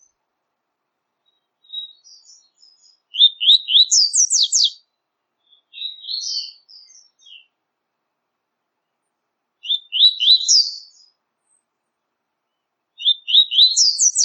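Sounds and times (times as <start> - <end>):
coleiro tui tui singing rapidly: 1.3 - 4.8, 5.4 - 7.5, 9.6 - 11.1, 13.0 - 14.2.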